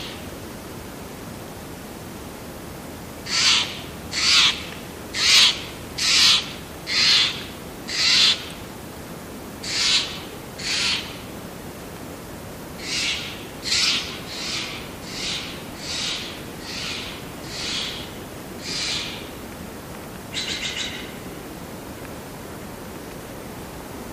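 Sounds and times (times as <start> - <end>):
sparse jungle birds: 3.2 - 8.6, 9.6 - 11.3, 12.8 - 19.5, 20.2 - 21.4.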